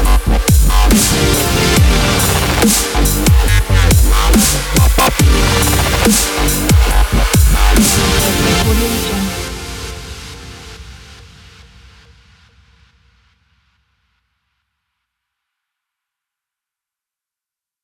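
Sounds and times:
dubstep opener music: 0.0 - 11.4.

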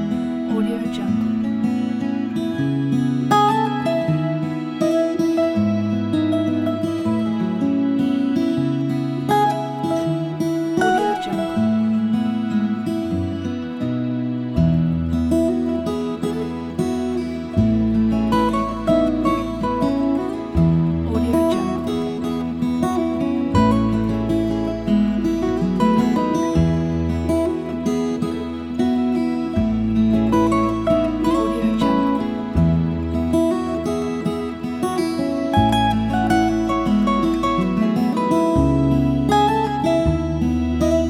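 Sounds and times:
sentimental acoustic ballad: 0.0 - 41.0.

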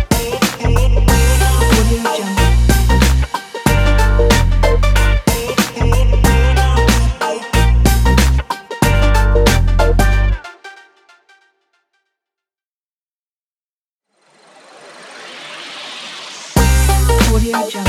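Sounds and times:
advertisement background music in groove style: 0.0 - 10.8, 16.3 - 17.8.

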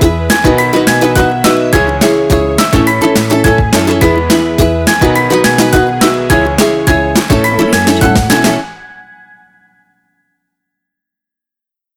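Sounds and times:
drum kit: 0.0 - 8.8.

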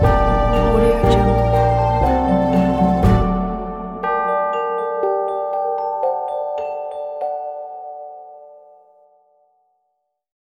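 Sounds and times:
halloween midnight bells ringing: 0.0 - 8.0.

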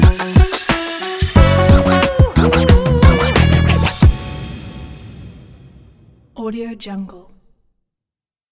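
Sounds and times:
hip hop funk music: 0.0 - 4.8.

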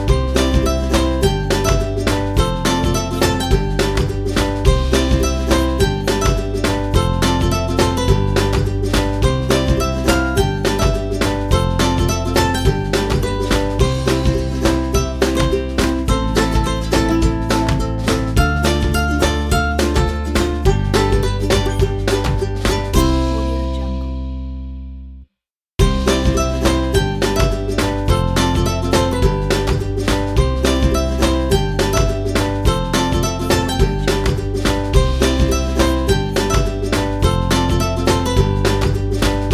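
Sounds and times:
background ukulele playing: 0.0 - 24.8, 25.8 - 39.5.

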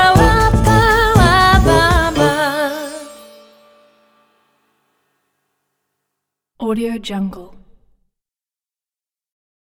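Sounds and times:
quirky fun jingle: 0.0 - 4.6.

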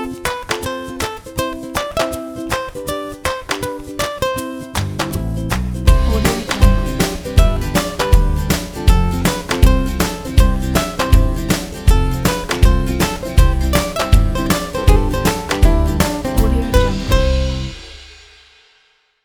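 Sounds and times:
happy children: 4.7 - 17.8.

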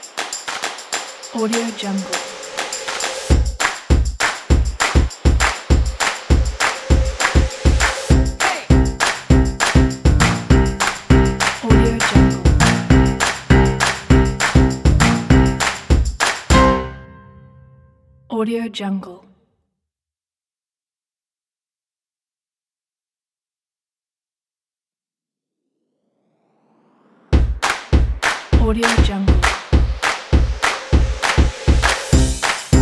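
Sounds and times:
hand claps: 0.0 - 16.7, 27.6 - 32.8
jazz music: 8.1 - 17.7, 32.1 - 32.8.

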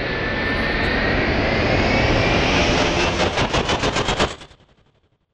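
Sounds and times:
cinematic tension music: 0.2 - 4.2.

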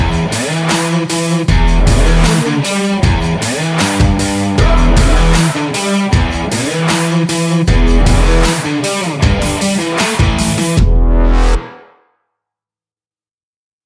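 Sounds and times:
energetic stylish indie rock music: 0.0 - 11.0.

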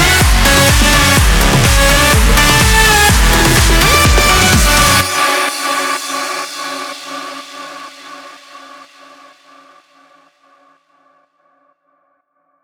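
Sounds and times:
electronic dance music: 0.0 - 8.2.

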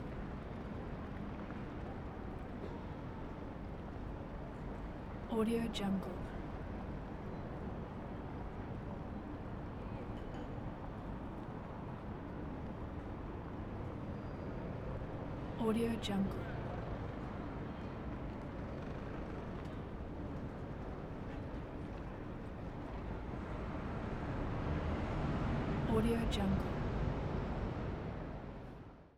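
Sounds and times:
city background noise: 0.0 - 29.1.

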